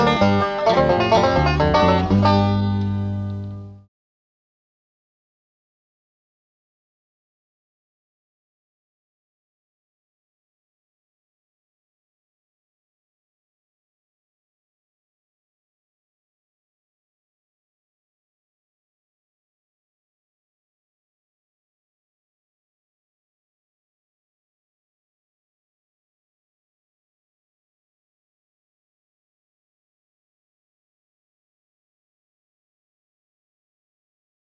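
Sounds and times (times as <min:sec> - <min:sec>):
banjo: 0:00.0 - 0:03.8.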